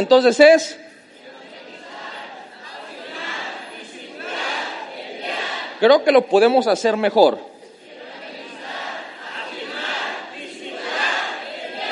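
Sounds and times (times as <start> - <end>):
speech: 0.0 - 0.9, 5.8 - 7.5
small group shouting loudly together: 1.3 - 5.8, 8.0 - 11.9.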